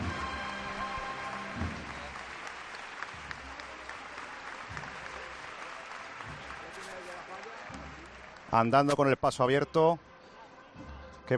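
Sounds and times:
street crowd applause greeting a passing procession: 0:00.0 - 0:08.9
speech: 0:08.5 - 0:10.1.

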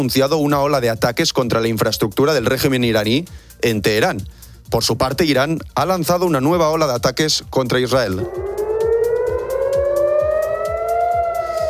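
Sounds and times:
speech: 0:00.0 - 0:08.6
air raid sirens in Tel Aviv: 0:08.2 - 0:11.6.

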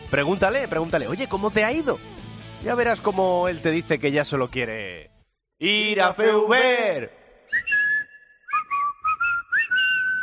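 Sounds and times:
speech: 0:00.1 - 0:07.2
stadium crowd whistling at players: 0:07.4 - 0:10.2.

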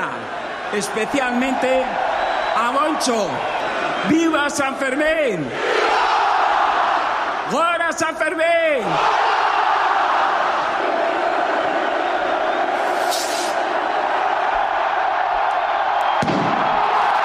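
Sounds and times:
festival crowd roaring and cheering at San Fermín: 0:00.0 - 0:17.2
speech: 0:00.7 - 0:05.8, 0:07.5 - 0:09.3
thud: 0:16.2 - 0:16.7.

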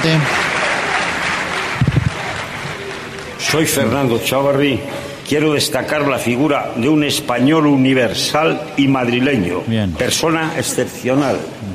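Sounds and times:
speech: 0:00.0 - 0:00.4, 0:03.5 - 0:11.7
audience applause: 0:00.0 - 0:04.6.

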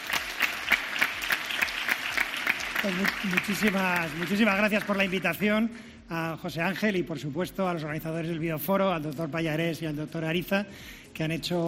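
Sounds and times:
audience applause for a guest at the Bioforo healthcare conference: 0:00.0 - 0:05.5
speech: 0:02.8 - 0:11.6.

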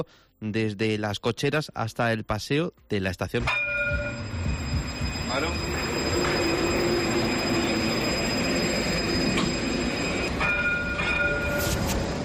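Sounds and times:
speech: 0:00.0 - 0:04.0, 0:05.3 - 0:05.8
Jaén tram rolling wheels on its full route during dynamic tests at night: 0:03.8 - 0:12.2.

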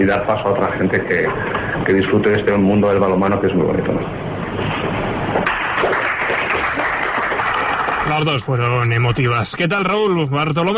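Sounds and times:
speech: 0:00.0 - 0:04.8, 0:08.1 - 0:10.7
crowd giving an ovation: 0:05.4 - 0:08.4.

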